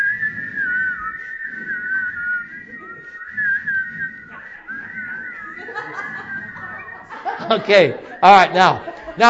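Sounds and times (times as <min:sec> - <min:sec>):
person whistling a melody: 0:00.0 - 0:08.8
murmuring and light laughter: 0:00.0 - 0:09.2
speech: 0:07.5 - 0:09.2.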